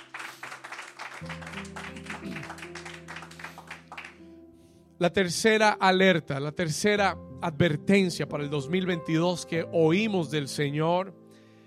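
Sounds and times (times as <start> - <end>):
audience applauding: 0.0 - 4.2
speech: 1.2 - 2.8, 5.0 - 11.2.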